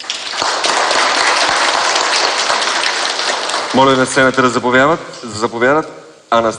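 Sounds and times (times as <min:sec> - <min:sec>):
audience applause: 0:00.0 - 0:04.4
speech: 0:03.7 - 0:06.5.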